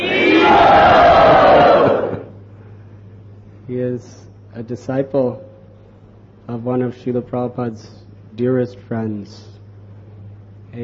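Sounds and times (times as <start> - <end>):
crowd calling out in welcome of a visiting religious teacher: 0.0 - 2.3
speech: 4.0 - 5.5, 6.5 - 9.5.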